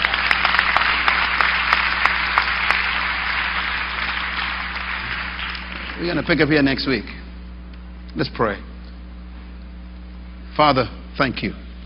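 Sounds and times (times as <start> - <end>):
audience clapping at a church service: 0.0 - 7.0
speech: 6.0 - 7.2, 8.2 - 8.7, 10.6 - 11.6.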